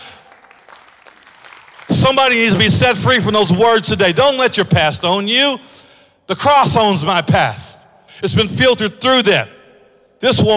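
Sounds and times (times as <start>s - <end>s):
audience hand clapping: 0.0s - 4.3s
speech: 2.1s - 5.7s, 6.3s - 9.6s, 10.2s - 10.5s.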